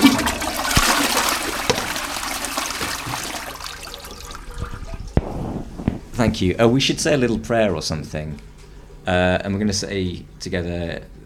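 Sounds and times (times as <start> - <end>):
toilet flush: 0.0 - 5.2
speech: 6.2 - 11.1.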